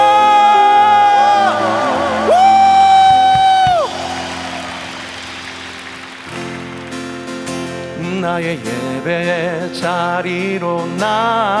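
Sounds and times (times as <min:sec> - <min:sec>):
audience cheering and shouting: 0:00.0 - 0:07.2
speech: 0:08.4 - 0:11.5.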